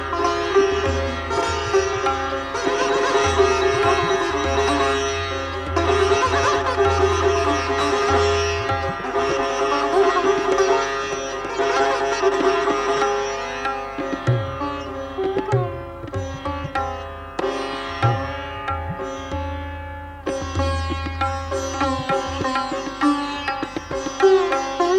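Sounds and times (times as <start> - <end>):
sitar playing a raga: 0.0 - 24.9.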